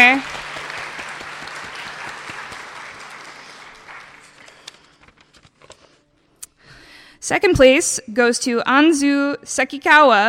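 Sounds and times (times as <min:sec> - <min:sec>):
audience applause: 0:00.0 - 0:05.0
speech: 0:07.3 - 0:10.2.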